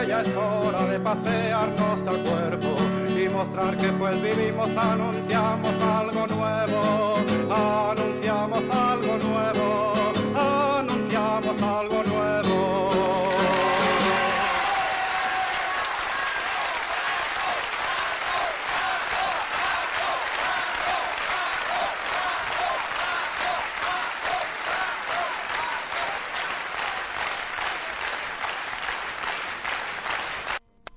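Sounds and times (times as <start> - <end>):
music: 0.0 - 14.8
speech: 0.1 - 13.8
audience applause at the Olimpia: 13.0 - 30.6.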